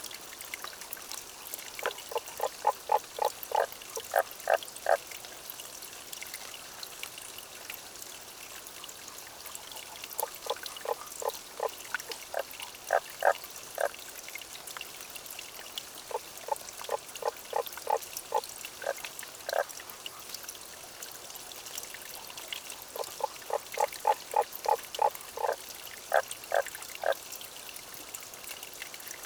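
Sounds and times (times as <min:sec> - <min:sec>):
trickling water: 0:00.0 - 0:29.2
Tago's brown frog croaking: 0:02.1 - 0:05.0, 0:10.2 - 0:13.9, 0:16.1 - 0:19.6, 0:23.0 - 0:27.2.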